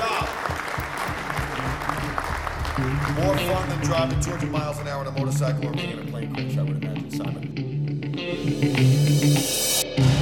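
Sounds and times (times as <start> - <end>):
audience applause: 0.0 - 4.8
speech: 2.8 - 10.1.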